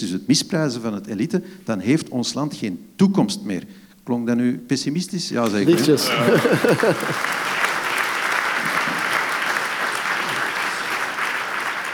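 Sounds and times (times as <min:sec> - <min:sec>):
speech: 0:00.0 - 0:07.5
audience applause: 0:05.4 - 0:11.9
laughter: 0:05.4 - 0:11.9.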